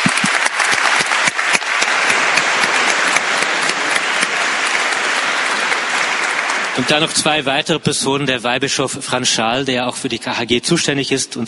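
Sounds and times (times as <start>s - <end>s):
crowd applause: 0.0s - 8.2s
speech: 6.8s - 11.4s.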